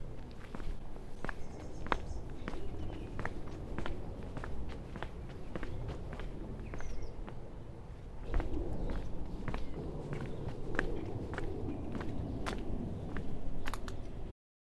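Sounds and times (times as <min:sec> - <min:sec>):
footsteps on concrete: 0:00.0 - 0:07.6, 0:08.2 - 0:14.0.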